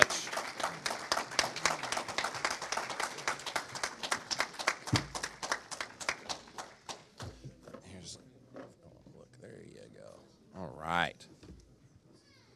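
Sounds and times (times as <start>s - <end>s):
audience applause: 0.0s - 7.0s.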